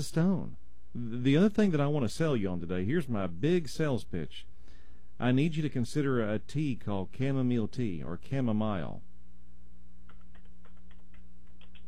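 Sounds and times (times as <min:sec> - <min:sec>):
speech: 0:00.0 - 0:04.5, 0:05.2 - 0:09.1
typing on a computer keyboard: 0:10.1 - 0:11.8.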